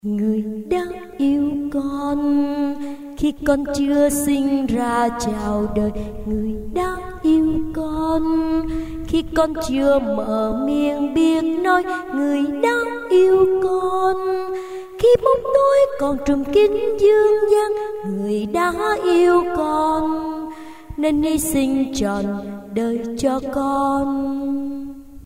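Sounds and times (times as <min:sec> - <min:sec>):
soprano singing: 0:00.0 - 0:25.1.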